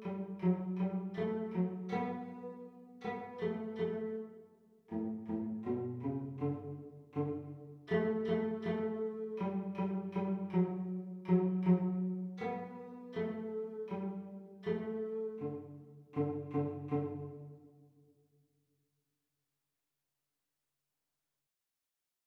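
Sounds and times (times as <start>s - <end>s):
cello duet playalong: 0.0s - 17.6s.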